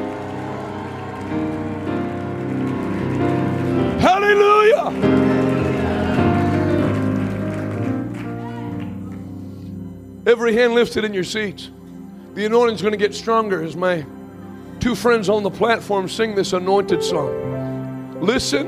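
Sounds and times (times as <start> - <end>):
people clapping hands: 0.0 - 9.4
speech: 10.3 - 11.8, 12.4 - 14.2, 14.8 - 17.4, 18.2 - 18.6.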